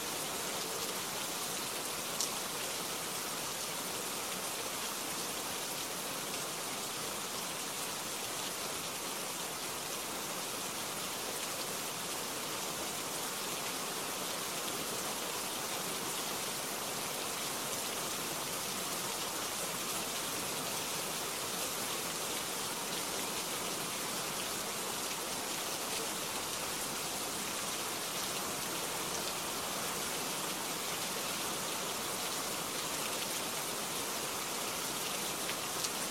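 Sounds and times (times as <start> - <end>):
light rain: 0.0 - 36.0.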